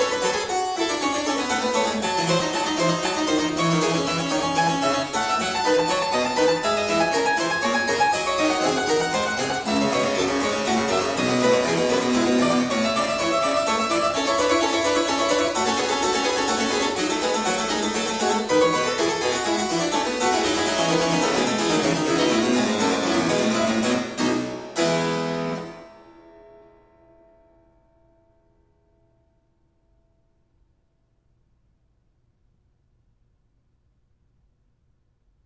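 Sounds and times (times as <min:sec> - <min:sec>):
invention in F major: 0:00.0 - 0:26.2.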